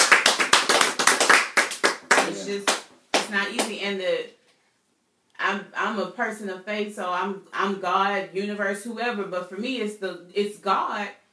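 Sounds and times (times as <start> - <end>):
audience clapping: 0.0 - 3.7
speech: 2.5 - 4.4, 5.4 - 11.2.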